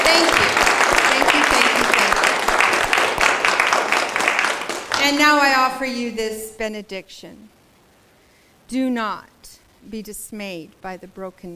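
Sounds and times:
audience applause: 0:00.0 - 0:05.4
speech: 0:05.3 - 0:07.6, 0:08.7 - 0:11.5.

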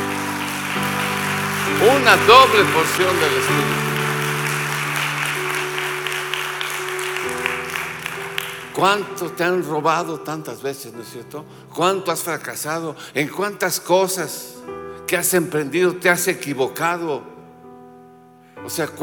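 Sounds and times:
church audience applause: 0:00.0 - 0:09.1
speech: 0:01.8 - 0:03.8, 0:08.8 - 0:17.3, 0:18.6 - 0:19.0.

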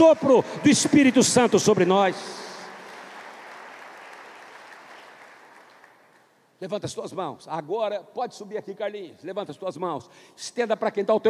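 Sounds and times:
speech: 0:00.0 - 0:02.5, 0:06.6 - 0:11.2
loud applause: 0:00.0 - 0:06.3.

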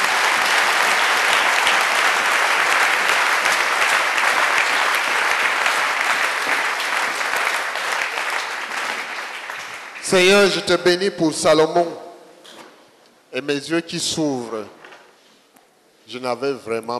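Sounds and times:
audience applause: 0:00.0 - 0:10.6
speech: 0:10.1 - 0:12.0, 0:13.4 - 0:14.8, 0:16.1 - 0:16.9.

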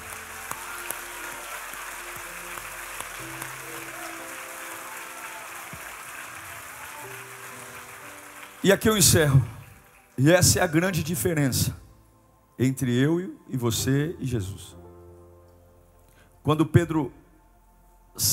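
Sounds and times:
audience applauding: 0:00.0 - 0:11.1
speech: 0:08.6 - 0:09.6, 0:10.2 - 0:11.8, 0:12.6 - 0:14.8, 0:16.4 - 0:17.2.

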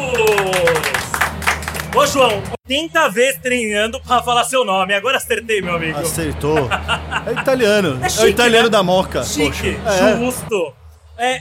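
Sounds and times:
audience applause: 0:00.0 - 0:02.6
speech: 0:02.0 - 0:11.4
laughter: 0:06.0 - 0:08.7.

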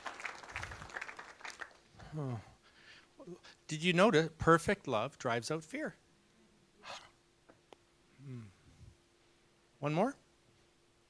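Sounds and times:
audience clapping: 0:00.0 - 0:01.9
speech: 0:02.1 - 0:02.5, 0:03.2 - 0:06.0, 0:09.8 - 0:10.2.

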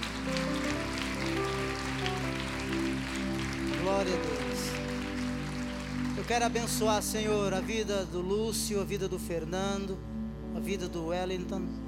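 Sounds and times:
audience applauding: 0:00.0 - 0:07.9
speech: 0:04.0 - 0:04.4, 0:06.3 - 0:11.8.

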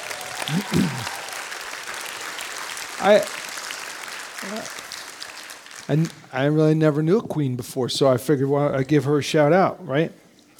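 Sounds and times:
audience applause: 0:00.0 - 0:06.6
speech: 0:00.5 - 0:01.2, 0:03.0 - 0:03.4, 0:04.4 - 0:04.8, 0:05.9 - 0:10.2.

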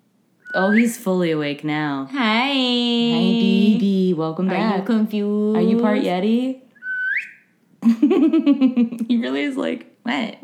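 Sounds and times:
alarm with a bird-like whistle: 0:00.4 - 0:01.0, 0:06.8 - 0:07.5
speech: 0:00.6 - 0:06.6, 0:07.9 - 0:10.4.

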